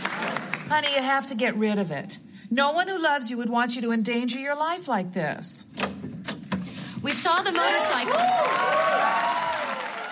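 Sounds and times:
live studio audience applause: 0:00.0 - 0:00.7, 0:07.5 - 0:10.1
speech: 0:00.7 - 0:06.0, 0:07.0 - 0:09.5.

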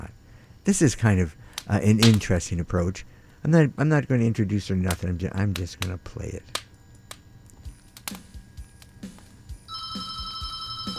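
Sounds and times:
speech: 0:00.7 - 0:06.6
telephone ringing: 0:09.7 - 0:10.9.

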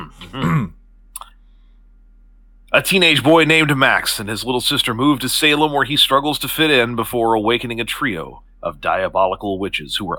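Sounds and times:
person clearing throat: 0:00.0 - 0:00.8
speech: 0:00.3 - 0:00.8, 0:02.8 - 0:10.1.

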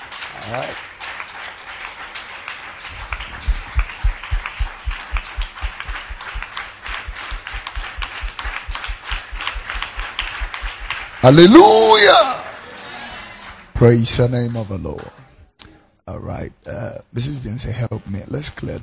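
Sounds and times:
audience clapping hands: 0:00.0 - 0:11.9
speech: 0:00.5 - 0:00.9, 0:11.2 - 0:12.4, 0:13.8 - 0:15.2, 0:16.2 - 0:18.8.

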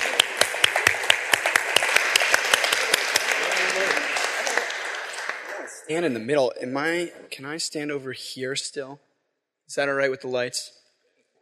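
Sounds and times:
audience warm round of applause: 0:00.0 - 0:06.2
speech: 0:05.9 - 0:09.1, 0:09.7 - 0:10.8.

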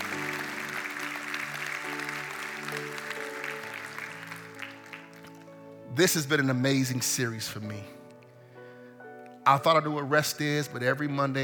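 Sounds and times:
audience clapping: 0:00.0 - 0:05.7
sustained keyboard chords: 0:00.0 - 0:11.4
speech: 0:06.0 - 0:08.0, 0:09.5 - 0:11.4.

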